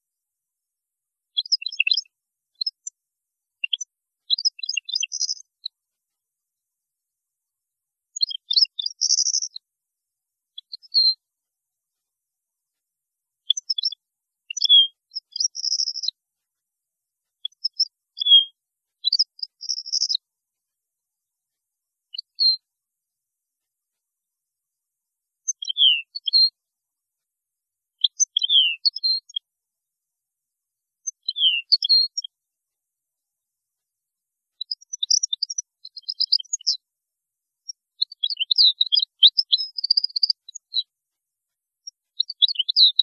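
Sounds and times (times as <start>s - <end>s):
European goldfinch song: 1.3s - 3.0s, 3.6s - 5.8s, 8.1s - 9.7s, 10.5s - 11.2s, 13.4s - 16.2s, 17.3s - 20.2s, 25.4s - 26.6s, 28.0s - 29.5s, 31.0s - 32.3s, 34.6s - 36.8s, 37.6s - 40.9s, 41.8s - 43.0s.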